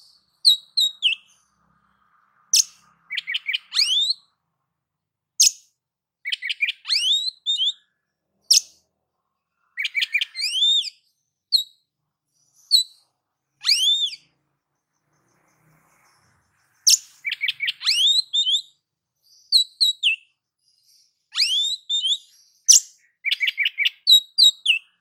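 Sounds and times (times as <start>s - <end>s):
oriental magpie-robin singing: 0.0s - 1.5s, 2.5s - 4.4s, 5.4s - 8.9s, 9.6s - 11.8s, 12.4s - 14.4s, 15.0s - 24.9s.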